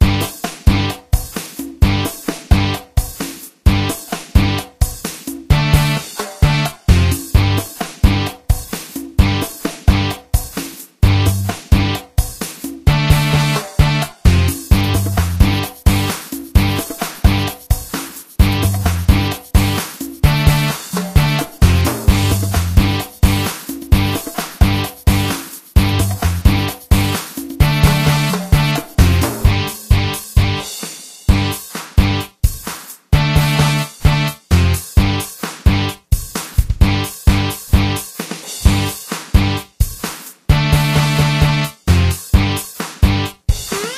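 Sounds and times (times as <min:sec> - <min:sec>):
rock music on radio: 0:00.0 - 0:01.0, 0:01.8 - 0:02.8, 0:03.7 - 0:04.6, 0:05.5 - 0:08.3, 0:09.2 - 0:10.2, 0:11.0 - 0:12.0, 0:12.9 - 0:17.5, 0:18.4 - 0:30.7, 0:31.3 - 0:32.3, 0:33.2 - 0:35.9, 0:36.8 - 0:38.0, 0:38.7 - 0:39.6, 0:40.5 - 0:43.9.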